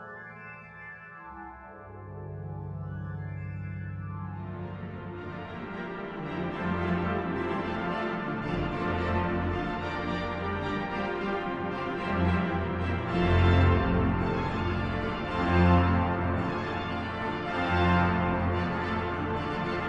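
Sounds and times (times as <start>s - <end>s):
symphonic trailer music: 4.4s - 19.8s.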